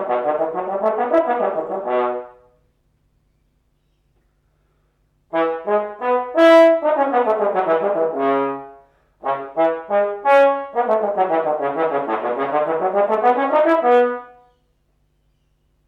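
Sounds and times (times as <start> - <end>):
trombone: 0.0 - 2.6, 5.3 - 14.5.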